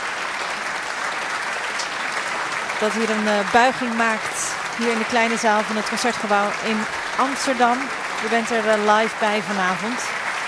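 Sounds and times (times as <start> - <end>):
audience applause for a French piano trio in the Concertgebouw small hall: 0.0 - 10.4
speech: 2.8 - 10.2.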